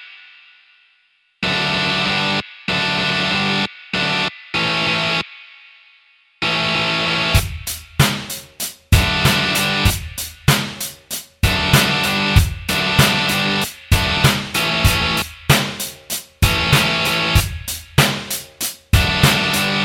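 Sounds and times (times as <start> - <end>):
backing track: 1.4 - 5.2, 6.4 - 19.8.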